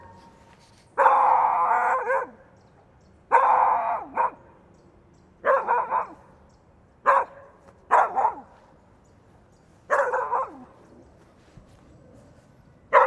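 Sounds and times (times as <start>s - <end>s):
French poodle barking: 1.0s - 2.4s, 3.3s - 4.5s, 5.4s - 6.3s, 7.1s - 8.6s, 9.9s - 10.8s, 12.9s - 13.0s.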